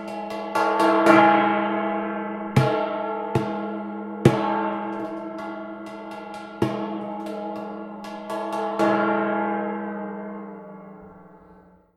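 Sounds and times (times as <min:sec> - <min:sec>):
waterphone: 0:00.0 - 0:11.8.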